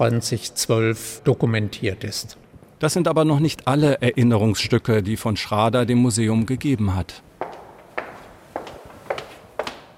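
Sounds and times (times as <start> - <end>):
speech: 0.0 - 7.3
footsteps of a man walking across a gallery into a museum corridor: 7.3 - 9.9.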